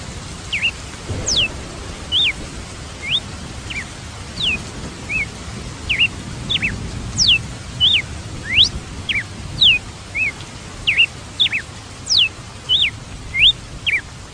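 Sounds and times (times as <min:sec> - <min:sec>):
red-cowled cardinal singing whistles: 0:00.5 - 0:01.5, 0:03.0 - 0:04.6, 0:05.9 - 0:14.0.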